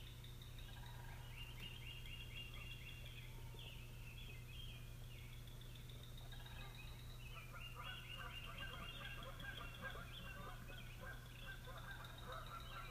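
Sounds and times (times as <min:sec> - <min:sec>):
morning birds singing: 0:00.0 - 0:12.9.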